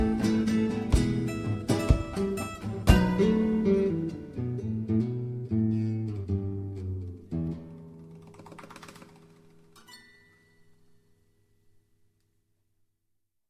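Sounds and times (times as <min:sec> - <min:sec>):
blues trio playing: 0:00.0 - 0:07.8.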